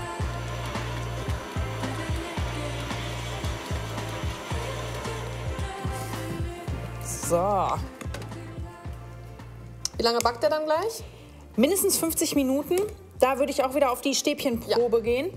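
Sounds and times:
electric mixer mixing zucchini cake batter in a mixing bowl: 0.1s - 6.7s
speech: 7.3s - 7.9s, 10.0s - 15.3s.

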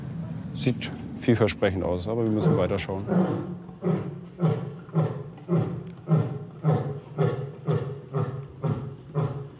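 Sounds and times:
speech: 0.6s - 4.1s
lion roaring in deep rhythmic grunting bursts: 2.3s - 9.5s.

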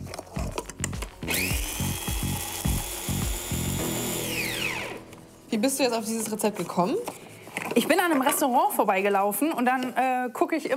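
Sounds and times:
blender grinding pepper and flour: 0.0s - 5.1s
speech: 5.5s - 7.2s, 7.8s - 10.7s.

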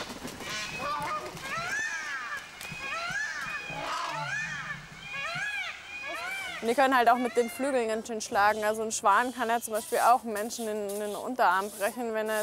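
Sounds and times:
flock of geese cackling and honking loudly: 0.4s - 7.7s
speech: 6.6s - 12.4s.

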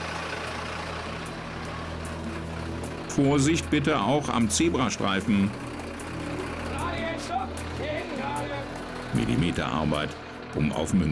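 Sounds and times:
fire engine truck slowly maneuvering: 0.0s - 11.1s
speech: 3.2s - 5.7s, 9.3s - 11.1s.

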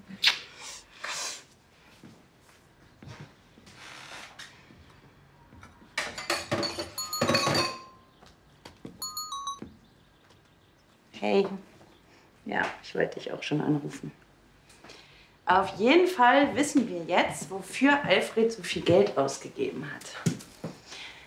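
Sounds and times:
cups and dishes clinking while making tea: 6.0s - 8.1s, 9.0s - 9.7s
high metallic pings: 6.6s - 8.1s, 9.0s - 9.7s
speech: 11.2s - 11.7s, 12.5s - 14.2s, 15.5s - 20.4s.

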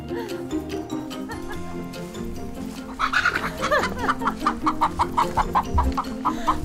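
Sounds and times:
laughter: 0.1s - 1.9s, 2.9s - 6.6s
backyard hens clucking: 1.3s - 6.6s.

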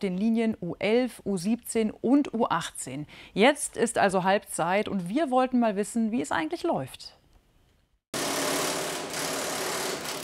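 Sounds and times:
speech: 0.0s - 7.2s
power drill on construction site: 8.2s - 10.2s.

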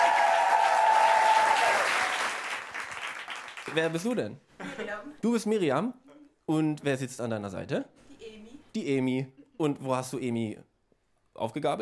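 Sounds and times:
audience applause at a stand-up comedy show: 0.0s - 4.0s
speech: 3.7s - 8.1s, 8.7s - 10.7s, 11.4s - 11.7s.

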